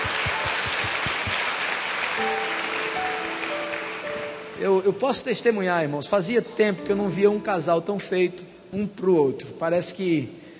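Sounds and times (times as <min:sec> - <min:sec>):
audience applause: 0:00.0 - 0:04.6
speech: 0:04.6 - 0:10.4.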